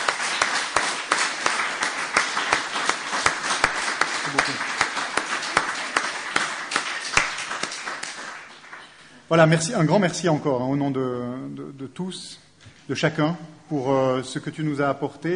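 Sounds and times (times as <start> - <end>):
audience applause: 0.0 - 9.1
speech: 9.3 - 15.3.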